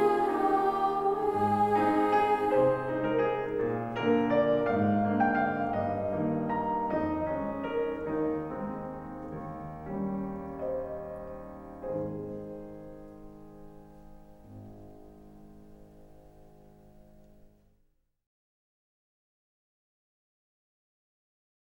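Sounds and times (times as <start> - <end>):
soprano and alto choir singing a waltz: 0.0 - 10.3.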